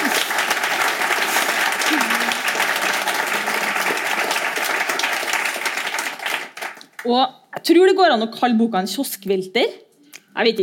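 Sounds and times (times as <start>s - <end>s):
audience applause: 0.0s - 7.0s
speech: 7.1s - 9.8s, 10.4s - 10.6s.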